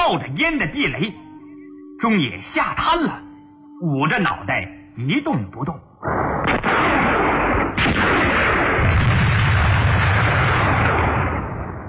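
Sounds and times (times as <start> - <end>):
speech: 0.1 - 1.2, 2.0 - 7.2, 7.8 - 9.1
rapid gunfire barrage: 6.0 - 11.8.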